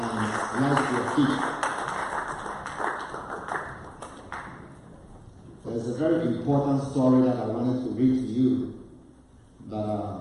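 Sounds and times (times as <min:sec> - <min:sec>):
audience clapping: 0:00.0 - 0:04.8
speech: 0:00.6 - 0:01.6, 0:06.5 - 0:08.8, 0:09.6 - 0:10.1.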